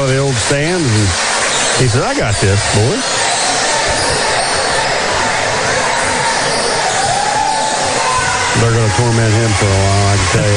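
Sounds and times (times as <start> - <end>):
speech: 0.0 - 3.3, 8.6 - 10.5
crowd applause in arena: 0.0 - 10.5.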